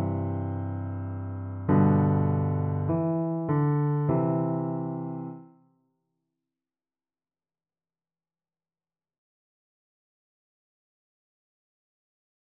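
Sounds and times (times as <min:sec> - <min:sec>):
piano duet: 0:00.0 - 0:05.5.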